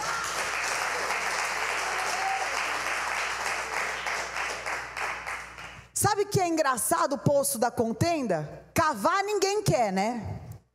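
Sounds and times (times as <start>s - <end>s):
audience applause: 0.0s - 5.8s
speech: 6.0s - 10.4s.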